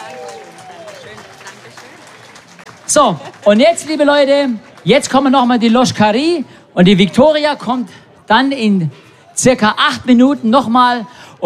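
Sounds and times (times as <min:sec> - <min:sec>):
audience applauding a performer: 0:00.0 - 0:05.2
crowd voices: 0:00.0 - 0:10.7
speech: 0:02.9 - 0:11.4.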